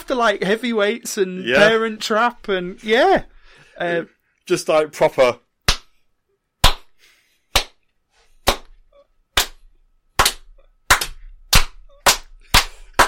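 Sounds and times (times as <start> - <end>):
speech: 0.1 - 5.4
slow clap: 5.7 - 6.0, 6.6 - 8.8, 9.4 - 13.0.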